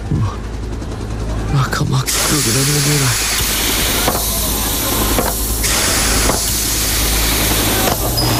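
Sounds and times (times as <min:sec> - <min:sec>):
speech: 0:00.1 - 0:00.5, 0:01.5 - 0:03.4
spaceship door hissing shut: 0:03.1 - 0:08.3.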